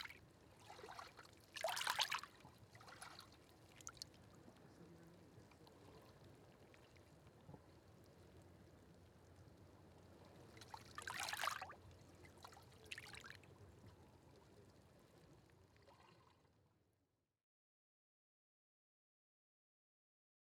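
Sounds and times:
very quiet lapping water hydrating kelp: 0.0 - 8.3, 10.0 - 16.6.

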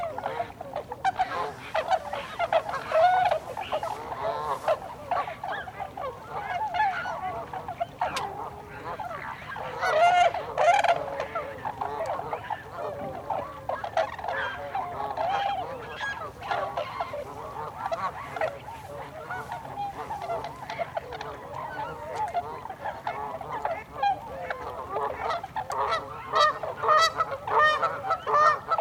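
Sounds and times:
Tundra swan calls, bugling hoots: 0.0 - 28.7.

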